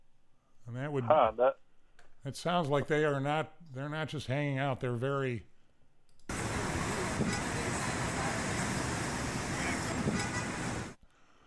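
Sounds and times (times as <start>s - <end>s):
speech: 0.7s - 1.6s, 2.2s - 5.5s
busy street: 6.3s - 11.0s.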